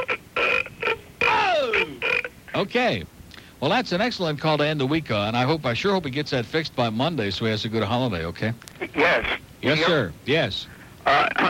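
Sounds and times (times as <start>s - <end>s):
croaky burps: 0.0s - 2.5s
speech: 2.6s - 11.4s.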